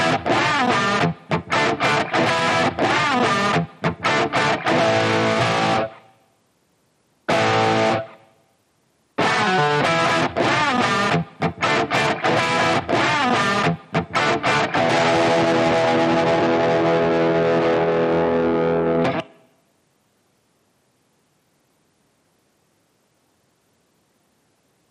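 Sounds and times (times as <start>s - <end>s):
electric guitar: 0.0s - 6.2s, 7.3s - 8.3s, 9.2s - 19.5s.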